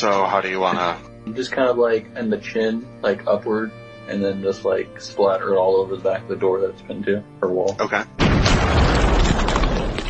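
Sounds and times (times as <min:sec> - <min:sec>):
speech: 0:00.0 - 0:08.8
gunshot: 0:08.2 - 0:10.0.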